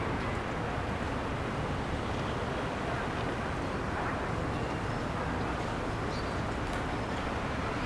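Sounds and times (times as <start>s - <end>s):
town ambience: 0.0s - 7.8s.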